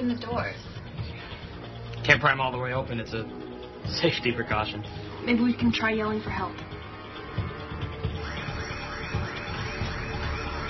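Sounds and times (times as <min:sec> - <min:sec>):
speech: 0:00.1 - 0:00.7, 0:02.0 - 0:06.7
building fire alarm wailing: 0:07.9 - 0:10.6.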